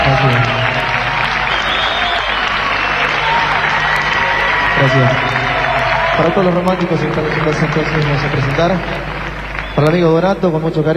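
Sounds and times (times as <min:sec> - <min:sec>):
crowd applause: 0:00.0 - 0:10.9
speech: 0:00.1 - 0:00.6, 0:04.8 - 0:05.4, 0:06.2 - 0:09.2, 0:09.8 - 0:10.9.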